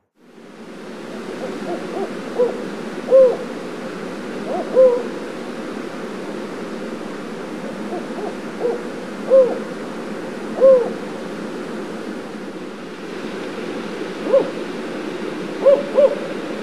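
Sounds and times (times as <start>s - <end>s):
Spotted Owl giving low hollow hoots: 1.1s - 3.6s, 4.4s - 5.2s, 7.6s - 9.8s, 10.5s - 11.1s, 14.2s - 14.7s, 15.6s - 16.5s.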